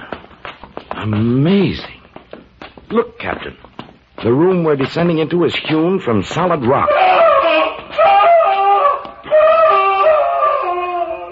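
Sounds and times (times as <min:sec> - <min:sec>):
speech: 0:01.0 - 0:02.0, 0:02.9 - 0:07.7
man screaming in mortal agony: 0:06.7 - 0:11.2.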